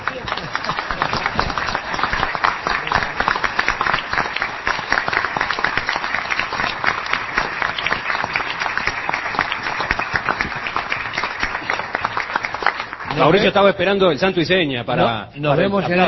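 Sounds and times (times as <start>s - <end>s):
small group clapping at the studio table: 0.0s - 14.0s
speech: 13.2s - 16.0s.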